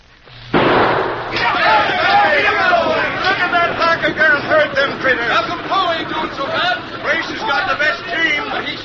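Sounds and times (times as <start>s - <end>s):
steady rumble: 0.0s - 8.8s
starting gunshot: 0.5s - 2.2s
excited crowd shouting and chattering: 0.9s - 8.8s.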